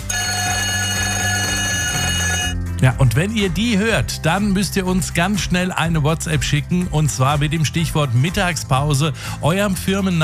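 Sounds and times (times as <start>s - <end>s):
radio station break electric bell ringing: 0.0s - 2.6s
speech: 2.8s - 10.2s.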